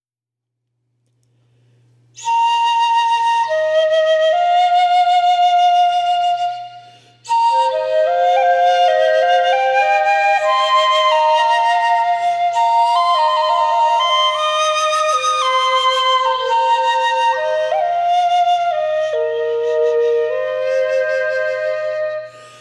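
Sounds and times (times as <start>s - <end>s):
fue bamboo flute: 2.2s - 22.5s.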